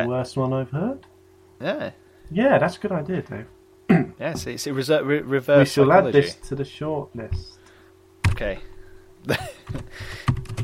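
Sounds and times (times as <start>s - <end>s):
speech: 0.0s - 7.6s, 8.4s - 10.2s
low hum: 0.0s - 10.6s
typing on computer keyboard keys: 9.7s - 10.6s.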